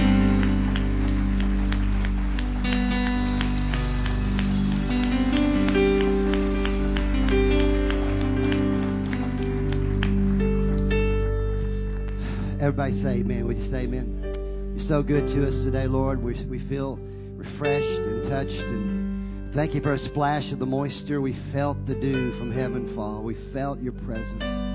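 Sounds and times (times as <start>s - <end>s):
audience clapping: 0.0s - 13.2s
speech: 12.8s - 14.2s, 14.9s - 18.9s, 19.5s - 24.7s.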